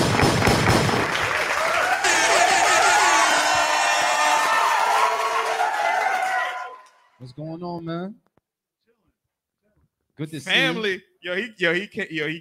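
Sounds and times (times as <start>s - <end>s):
live audience clapping: 0.0s - 7.0s
cheers and whoops: 1.2s - 7.1s
speech: 10.2s - 12.3s.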